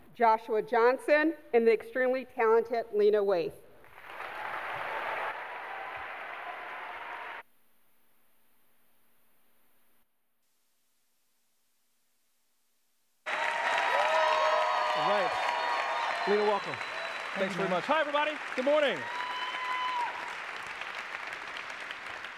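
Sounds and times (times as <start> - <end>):
speech: 0.2 - 3.6, 17.5 - 19.2
audience applause welcoming guests at a San Francisco Foundation event: 3.8 - 7.4, 13.3 - 22.3.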